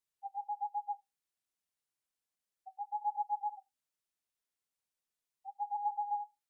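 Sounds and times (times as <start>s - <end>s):
boreal owl calling: 0.2s - 1.0s, 2.7s - 3.6s, 5.5s - 6.3s.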